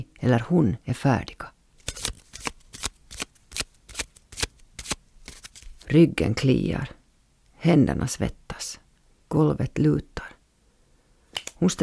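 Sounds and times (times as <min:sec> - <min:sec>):
speech: 0:00.2 - 0:01.5, 0:05.9 - 0:07.0, 0:07.6 - 0:10.3, 0:11.6 - 0:11.8
playing cards being shuffled in crisp papery riffles: 0:01.8 - 0:05.9.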